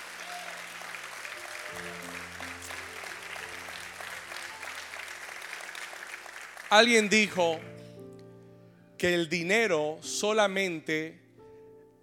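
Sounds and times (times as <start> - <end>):
audience applause: 0.0 - 7.5
speech: 6.7 - 7.8, 9.0 - 11.2.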